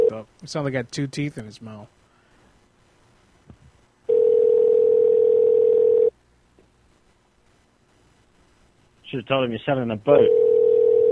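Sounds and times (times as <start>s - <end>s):
speech: 0.1s - 2.0s, 9.1s - 10.4s
telephone tone after caller hangs up: 4.1s - 6.1s, 10.2s - 11.0s.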